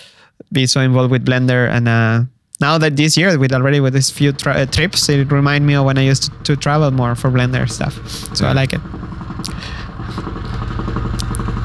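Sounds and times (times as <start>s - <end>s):
speech: 0.5s - 10.4s
helicopter flying overhead: 3.7s - 11.6s.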